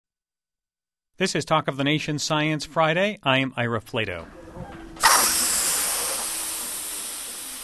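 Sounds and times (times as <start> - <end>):
speech: 1.2 - 4.7
helium balloons being inflated: 5.0 - 7.6.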